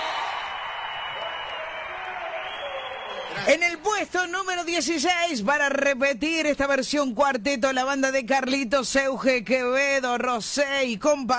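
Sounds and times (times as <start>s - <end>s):
audience applause: 0.0s - 3.9s
speech: 3.4s - 11.3s.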